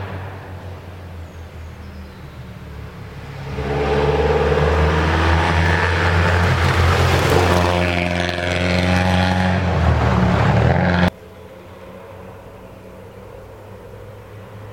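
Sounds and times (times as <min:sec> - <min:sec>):
rally car engine revving in the Pigelleto nature reserve: 0:03.0 - 0:11.1.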